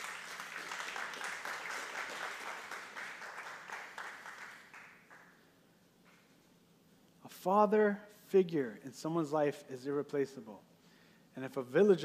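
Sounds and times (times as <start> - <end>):
audience applause: 0.0 - 5.3
speech: 7.4 - 10.7, 11.4 - 12.0.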